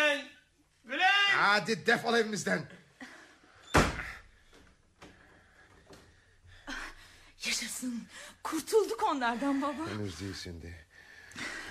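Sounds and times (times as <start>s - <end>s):
speech: 1.4s - 2.8s, 7.8s - 11.5s
front door slamming: 3.7s - 4.2s.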